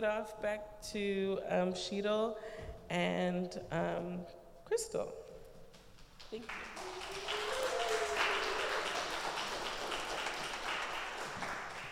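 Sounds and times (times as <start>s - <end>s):
speech: 0.0s - 5.2s, 6.3s - 6.8s
audience applause: 6.4s - 11.9s.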